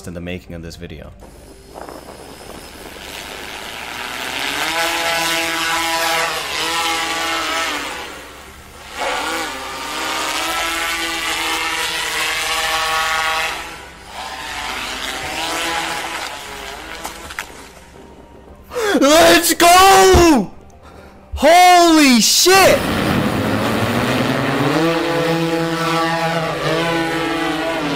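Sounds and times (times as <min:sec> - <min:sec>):
speech: 0:00.0 - 0:01.4, 0:19.1 - 0:20.5, 0:21.4 - 0:23.0
Dubai police HoverSurf hover bike propeller whine: 0:01.2 - 0:18.5, 0:22.6 - 0:27.9.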